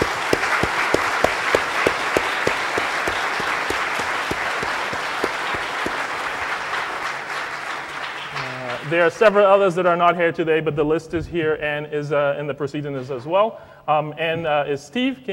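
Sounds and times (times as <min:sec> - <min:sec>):
audience applause: 0:00.0 - 0:09.1
speech: 0:08.9 - 0:15.3.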